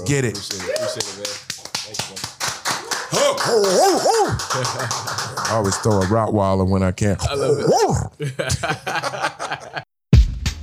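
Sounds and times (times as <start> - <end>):
speech: 0.1 - 1.4, 3.2 - 9.8
audience applause: 0.1 - 6.3
laughter: 3.1 - 6.1, 7.3 - 9.9.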